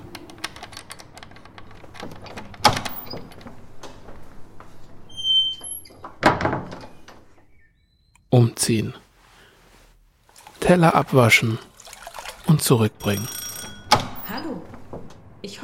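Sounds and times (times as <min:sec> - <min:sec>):
key in front door lock: 0:00.0 - 0:03.4
front door opening: 0:00.0 - 0:08.2, 0:13.0 - 0:15.4
speech: 0:08.4 - 0:09.0, 0:10.7 - 0:11.7, 0:12.5 - 0:13.4.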